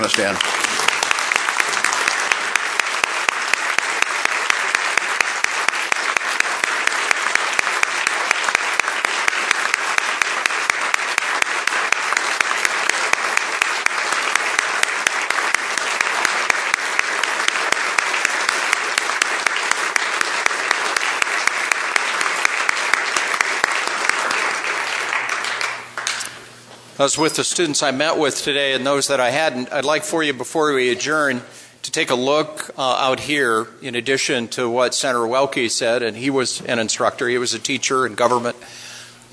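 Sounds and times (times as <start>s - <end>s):
speech: 0.0s - 0.6s, 27.0s - 38.6s
audience applause: 0.0s - 26.4s.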